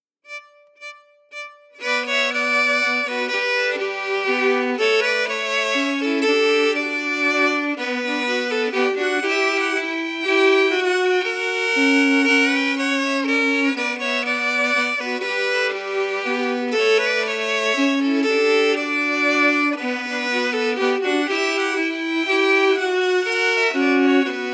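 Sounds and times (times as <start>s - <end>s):
music harmonies: 0.3s - 24.5s.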